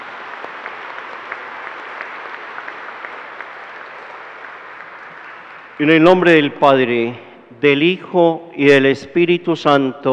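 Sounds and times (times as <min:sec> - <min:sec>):
audience applause: 0:00.0 - 0:05.8
speech: 0:05.8 - 0:10.1.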